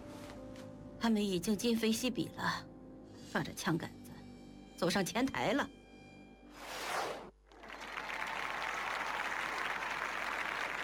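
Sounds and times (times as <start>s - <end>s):
speech: 1.0s - 2.7s, 3.3s - 4.0s, 4.8s - 5.8s
warm applause from a crowd: 7.5s - 10.8s.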